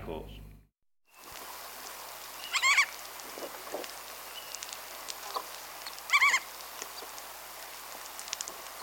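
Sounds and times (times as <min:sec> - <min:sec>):
crab-plover chorus of overlapping barking calls: 0:02.2 - 0:08.8.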